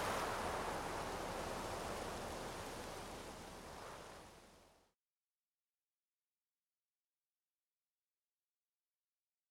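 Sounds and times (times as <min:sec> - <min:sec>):
wind in leaves: 0:00.0 - 0:04.7.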